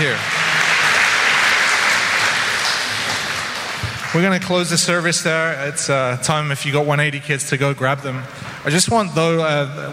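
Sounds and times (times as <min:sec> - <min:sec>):
audience applause: 0:00.0 - 0:05.0
speech: 0:04.2 - 0:09.9.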